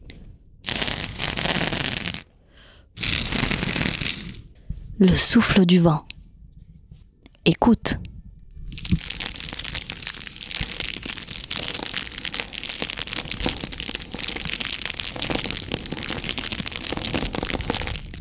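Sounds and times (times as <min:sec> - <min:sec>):
flame crackling: 0:00.6 - 0:02.3, 0:03.0 - 0:04.6, 0:08.7 - 0:18.2
speech: 0:05.0 - 0:06.1, 0:07.5 - 0:08.1.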